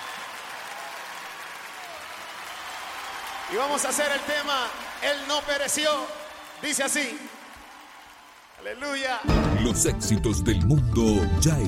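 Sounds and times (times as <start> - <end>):
audience applause: 0.0 - 9.3
speech: 3.5 - 7.4, 8.6 - 11.6.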